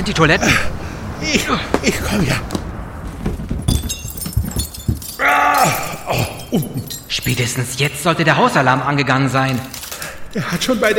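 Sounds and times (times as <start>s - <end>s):
speech: 0.0s - 2.6s, 6.5s - 10.9s
window glass kicked in and breaking in a video game: 3.2s - 8.0s.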